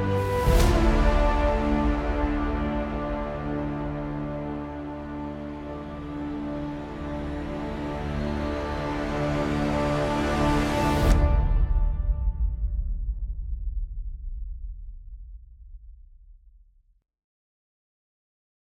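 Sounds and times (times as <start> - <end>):
epic trailer orchestral music: 0.0 - 13.6.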